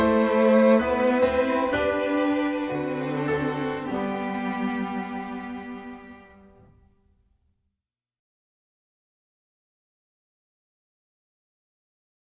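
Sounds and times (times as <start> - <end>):
prelude music: 0.0 - 7.1.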